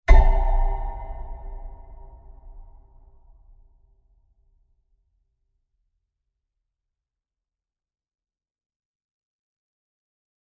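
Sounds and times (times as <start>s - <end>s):
long deep impact: 0.1s - 3.5s.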